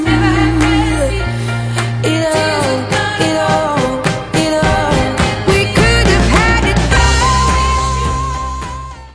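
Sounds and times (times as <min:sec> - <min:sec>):
drums with chorus effect: 0:00.1 - 0:09.1.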